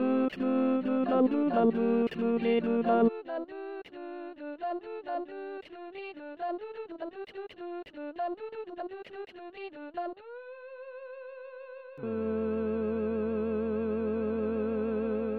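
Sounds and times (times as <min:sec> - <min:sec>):
tenor voice singing in E flat: 0:00.0 - 0:05.3, 0:12.0 - 0:15.3.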